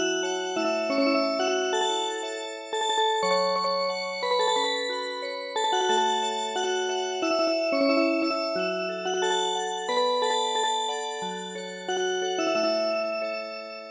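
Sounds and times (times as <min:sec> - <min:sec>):
music box melody: 0:00.0 - 0:13.8.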